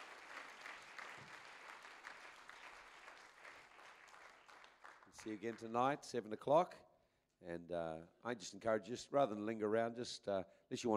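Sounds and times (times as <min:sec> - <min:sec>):
audience clapping: 0:00.0 - 0:05.8
speech: 0:05.2 - 0:10.9.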